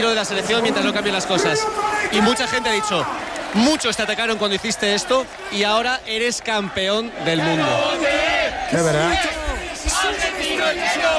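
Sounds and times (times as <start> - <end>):
speech: 0.0 - 9.4
group of players shouting and chanting in celebration: 0.0 - 11.1.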